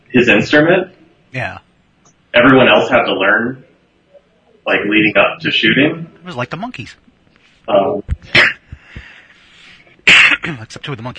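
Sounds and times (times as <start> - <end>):
speech: 0.1 - 1.6, 2.3 - 3.7, 4.7 - 7.0, 7.7 - 8.5, 10.1 - 11.1
coughing: 8.2 - 9.2, 9.9 - 10.8.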